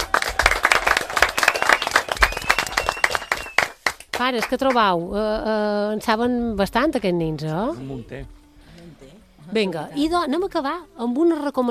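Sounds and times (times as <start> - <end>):
audience applause: 0.0 - 4.2
speech: 4.2 - 8.4, 9.5 - 11.7.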